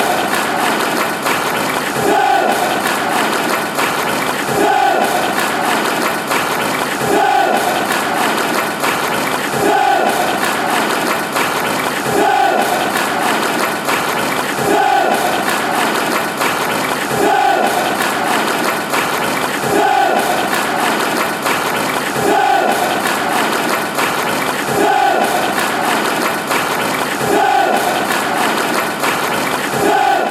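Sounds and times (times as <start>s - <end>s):
fans chanting: 0.0s - 30.2s
people clapping: 0.0s - 30.2s.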